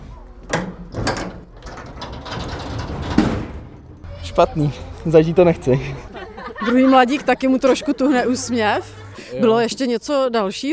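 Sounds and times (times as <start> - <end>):
car crash simulator operating: 0.5 - 4.1
speech: 4.4 - 10.7
laughter: 4.8 - 9.8.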